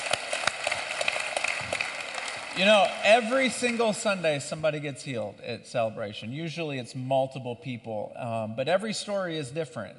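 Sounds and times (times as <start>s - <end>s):
audience applause: 0.0s - 4.0s
speech: 2.6s - 9.9s.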